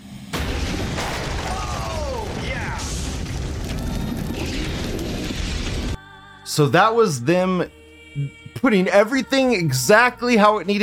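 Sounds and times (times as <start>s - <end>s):
house blown apart in a staged gas explosion: 0.0s - 6.0s
speech: 6.6s - 10.8s.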